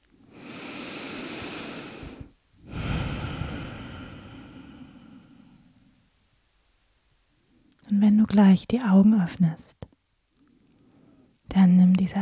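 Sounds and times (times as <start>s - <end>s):
deep breathing in and out during a guided meditation: 0.2s - 6.0s, 10.4s - 11.4s
speech: 8.0s - 9.9s, 11.6s - 12.2s.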